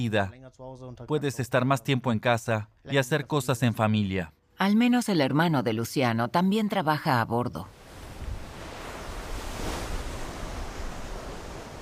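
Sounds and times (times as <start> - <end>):
speech: 0.0 - 7.8
wind freshening at sea aboard a fishing boat: 7.8 - 11.8.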